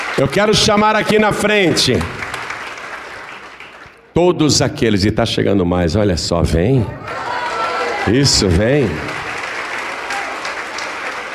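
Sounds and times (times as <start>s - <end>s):
applause from a church congregation: 0.0s - 4.1s, 7.0s - 11.3s
speech: 0.2s - 2.2s, 4.2s - 7.4s, 8.0s - 9.1s.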